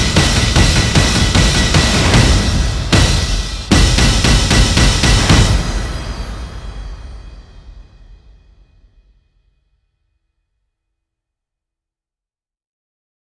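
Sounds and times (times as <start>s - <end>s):
drums: 0.0s - 9.2s.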